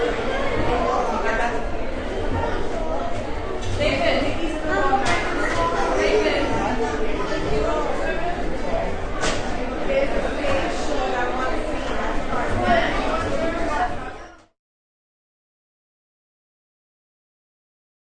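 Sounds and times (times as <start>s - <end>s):
background sounds inside crowded cafeteria: 0.0s - 14.6s.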